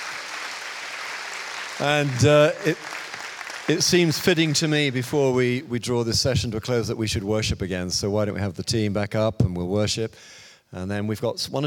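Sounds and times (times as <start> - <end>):
round of applause: 0.0 - 5.4
speech: 1.8 - 3.0, 3.7 - 11.6.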